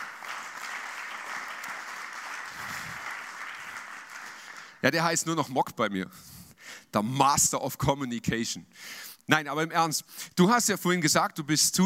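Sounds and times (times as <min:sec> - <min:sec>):
audience applause: 0:00.0 - 0:04.8
speech: 0:04.8 - 0:11.8.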